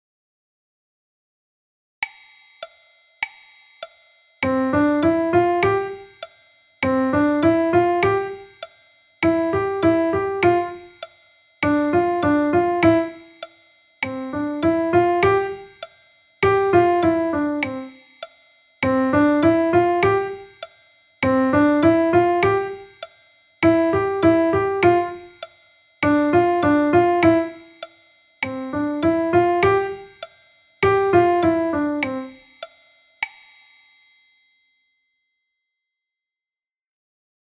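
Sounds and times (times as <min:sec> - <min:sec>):
piano music: 0:04.5 - 0:06.1, 0:06.8 - 0:08.5, 0:09.2 - 0:11.0, 0:11.6 - 0:13.3, 0:14.1 - 0:15.8, 0:16.4 - 0:17.9, 0:18.8 - 0:20.5, 0:21.2 - 0:22.9, 0:23.6 - 0:25.4, 0:26.0 - 0:27.7, 0:28.6 - 0:30.2, 0:30.8 - 0:32.4.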